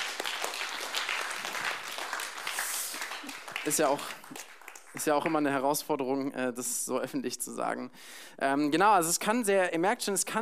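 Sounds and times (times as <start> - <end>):
audience clapping: 0.0 - 5.7
speech: 3.6 - 10.4.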